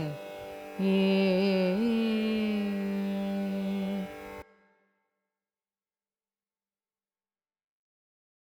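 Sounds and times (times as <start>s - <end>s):
carnatic raga music: 0.0s - 5.0s.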